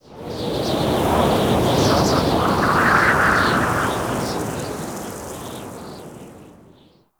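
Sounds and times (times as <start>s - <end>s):
exterior wind gust: 0.0s - 7.0s.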